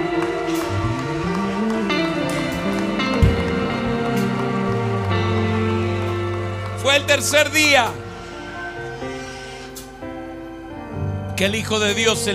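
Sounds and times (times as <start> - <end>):
audience applauding: 0.0 - 9.3
speech: 7.0 - 8.0, 11.4 - 12.3.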